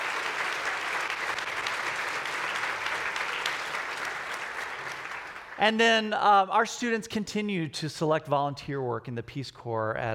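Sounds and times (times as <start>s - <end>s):
audience applause: 0.0s - 5.6s
speech: 5.6s - 10.1s.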